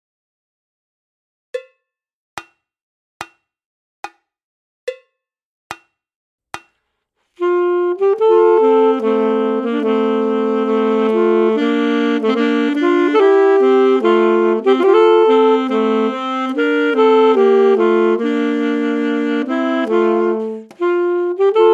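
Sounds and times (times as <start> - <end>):
Scottish duet: 7.4 - 21.7.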